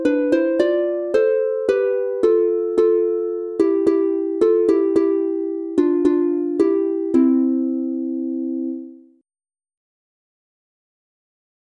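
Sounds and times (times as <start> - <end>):
harp instrumental in C major: 0.0 - 9.1.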